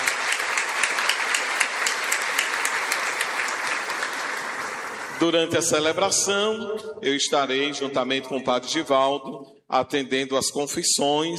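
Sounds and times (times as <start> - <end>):
crowd applauding: 0.0 - 5.8
speech: 5.2 - 11.3.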